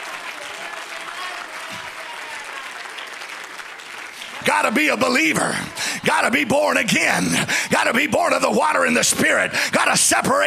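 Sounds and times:
audience clapping hands: 0:00.0 - 0:08.0
speech: 0:04.5 - 0:10.4.

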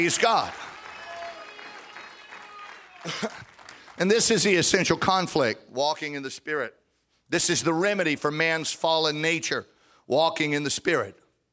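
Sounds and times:
speech: 0:00.0 - 0:00.7, 0:03.0 - 0:11.2
church congregation clapping hands during worship: 0:00.0 - 0:04.8.

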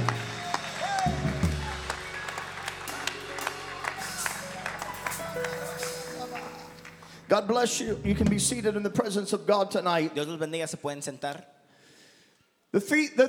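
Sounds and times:
crowd clapping hands: 0:00.0 - 0:07.3
speech: 0:07.4 - 0:11.6, 0:12.7 - 0:13.2.

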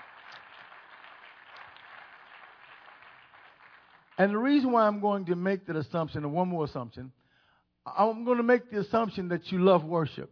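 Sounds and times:
audience clapping hands: 0:00.0 - 0:04.8
speech: 0:04.2 - 0:07.2, 0:07.9 - 0:10.3.

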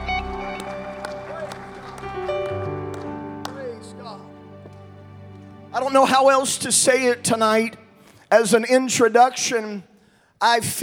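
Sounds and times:
audience clapping: 0:00.0 - 0:07.4
organ-like music chords: 0:00.0 - 0:08.3
speech: 0:05.8 - 0:10.8.

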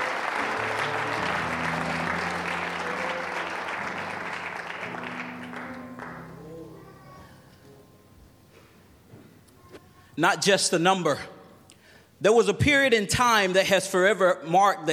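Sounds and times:
audience applauding in praise: 0:00.0 - 0:07.0
speech: 0:10.2 - 0:11.3, 0:12.2 - 0:14.9.

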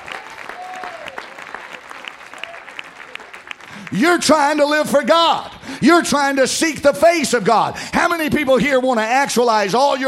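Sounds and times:
audience clapping hands: 0:00.0 - 0:05.0
speech: 0:03.9 - 0:10.0.

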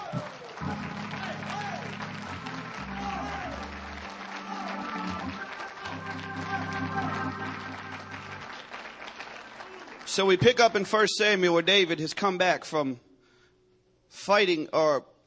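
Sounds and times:
audience applause: 0:00.0 - 0:10.8
speech: 0:10.2 - 0:13.1, 0:14.3 - 0:15.1.

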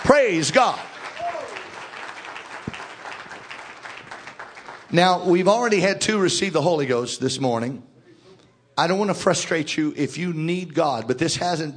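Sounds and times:
crowd clapping: 0:00.0 - 0:05.3
speech: 0:00.1 - 0:00.9, 0:04.9 - 0:07.9, 0:08.8 - 0:11.7.

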